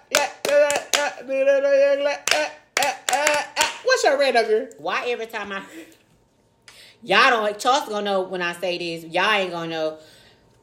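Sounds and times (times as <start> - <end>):
hand clapping: 0.0 - 1.2, 2.2 - 3.9
speech: 1.2 - 6.0, 7.0 - 10.2.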